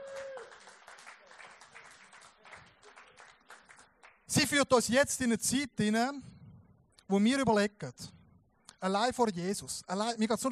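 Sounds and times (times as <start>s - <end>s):
applause: 0.0s - 4.4s
speech: 4.3s - 6.3s, 7.1s - 8.2s, 8.8s - 10.5s.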